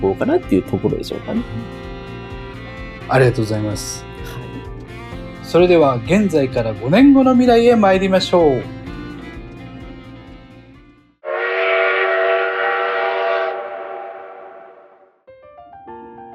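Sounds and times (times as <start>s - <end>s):
speech: 0.0s - 1.9s, 3.1s - 4.4s, 5.5s - 8.8s
train whistle: 11.2s - 15.1s.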